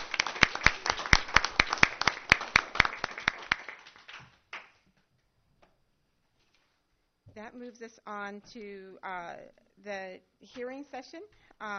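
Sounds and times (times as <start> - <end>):
round of applause: 0.0 - 4.8
speech: 7.5 - 11.7.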